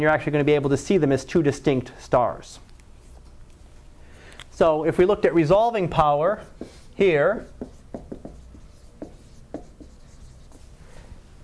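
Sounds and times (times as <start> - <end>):
speech: 0.0 - 2.6, 4.6 - 8.0
erasing drawings on a classroom board: 6.4 - 10.8.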